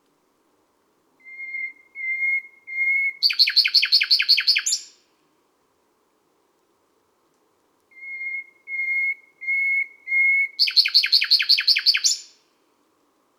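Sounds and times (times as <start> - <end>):
common nightingale singing at midnight in Les Salelles, Ardeche: 1.2 - 5.0, 7.9 - 12.4.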